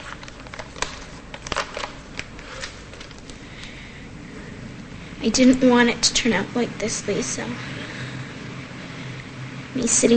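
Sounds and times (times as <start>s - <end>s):
paper letter being unfolded and smoothed: 0.0s - 3.4s
speech: 5.2s - 7.8s, 9.8s - 10.1s.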